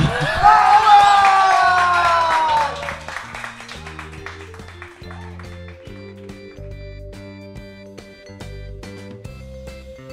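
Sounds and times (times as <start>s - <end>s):
crowd applause: 0.0s - 6.7s.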